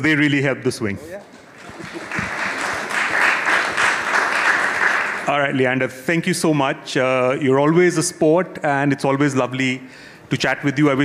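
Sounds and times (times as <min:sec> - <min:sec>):
speech: 0:00.0 - 0:01.3, 0:05.3 - 0:11.0
round of applause: 0:01.5 - 0:05.4.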